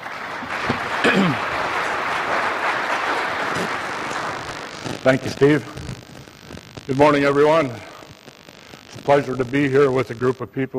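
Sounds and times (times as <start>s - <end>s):
audience at a safety and health gathering applauding a speaker: 0.0s - 4.8s
speech: 5.0s - 5.8s, 6.9s - 7.9s, 9.0s - 10.7s.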